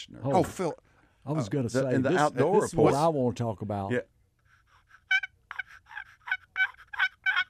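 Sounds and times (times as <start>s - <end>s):
speech: 0.0s - 4.1s
handmade turkey call being blown in raspy gobbling yelps: 4.7s - 7.4s.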